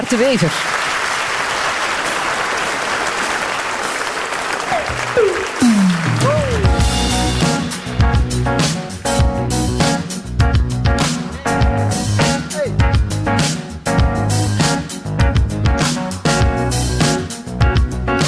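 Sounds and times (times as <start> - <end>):
crowd applause: 0.0 - 7.2
speech: 0.1 - 0.8, 5.2 - 6.0
music with a bright melodic line: 6.2 - 18.2.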